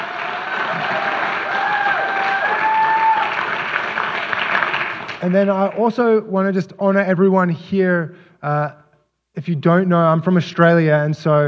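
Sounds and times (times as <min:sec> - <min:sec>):
faint whistles and cheers: 0:00.0 - 0:03.4
crowd clapping: 0:00.0 - 0:06.0
speech: 0:05.2 - 0:08.8, 0:09.4 - 0:11.4.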